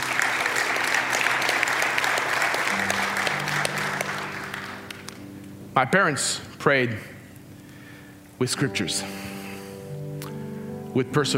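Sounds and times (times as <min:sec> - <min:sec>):
audience applause: 0:00.0 - 0:05.2
speech: 0:05.8 - 0:07.1, 0:08.4 - 0:09.3, 0:10.9 - 0:11.3.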